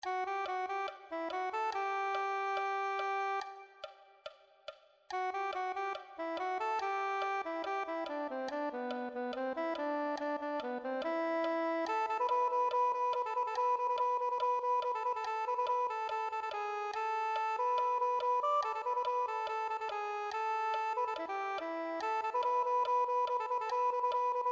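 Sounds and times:
soprano saxophone: 0:00.0 - 0:03.9, 0:05.1 - 0:24.4.

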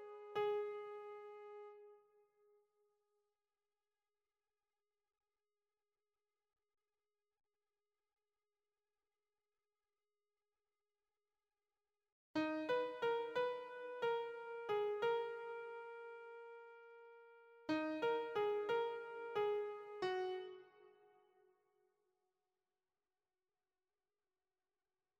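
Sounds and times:
piano melody: 0:12.4 - 0:17.1, 0:17.7 - 0:20.7.

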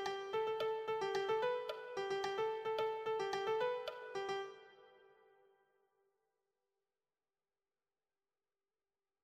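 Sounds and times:
piano melody: 0:00.0 - 0:04.7.

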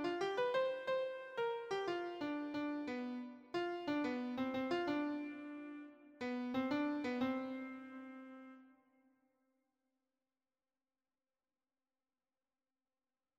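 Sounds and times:
lead piano: 0:00.0 - 0:08.4.

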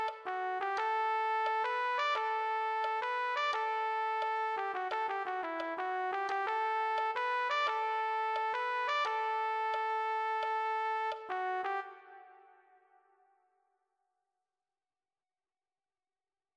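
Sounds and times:
trumpet: 0:00.0 - 0:13.1.

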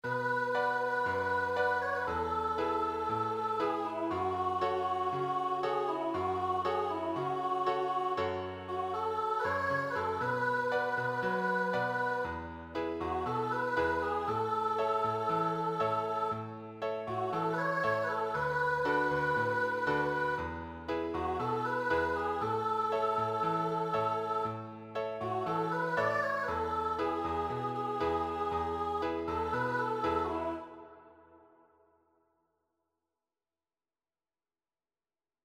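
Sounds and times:
piano accompaniment: 0:00.1 - 0:30.6.

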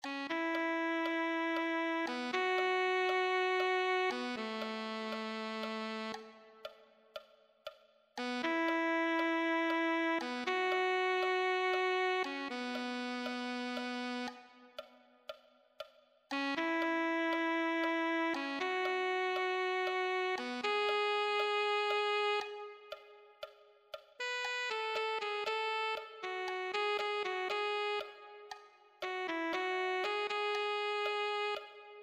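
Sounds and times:
alto saxophone: 0:00.0 - 0:07.0, 0:08.2 - 0:15.0, 0:16.3 - 0:23.5, 0:24.2 - 0:32.0.

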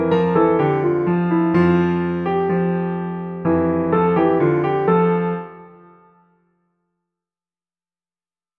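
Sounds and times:
advanced solo piano: 0:00.0 - 0:06.4.

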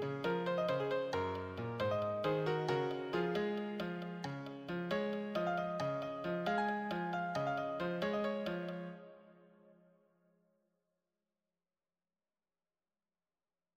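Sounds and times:
solo piano: 0:00.0 - 0:09.8.

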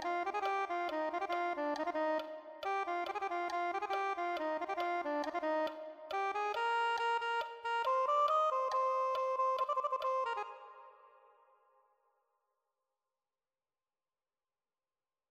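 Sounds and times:
soprano saxophone: 0:00.0 - 0:11.2.

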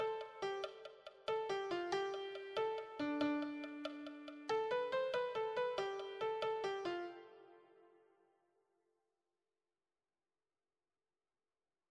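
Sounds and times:
lead piano: 0:00.0 - 0:07.5.

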